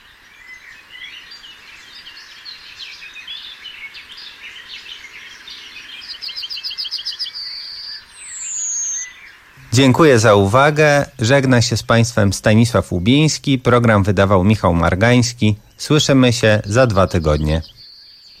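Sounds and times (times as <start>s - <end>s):
bird song from a film: 0.0s - 18.3s
speech: 9.8s - 17.8s.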